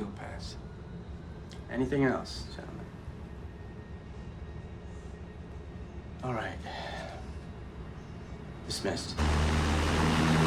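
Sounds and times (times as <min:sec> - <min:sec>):
speech: 0:01.7 - 0:02.9, 0:06.2 - 0:07.0, 0:08.7 - 0:09.5
plane engine drone aboard a troop plane at twilight: 0:09.2 - 0:10.4.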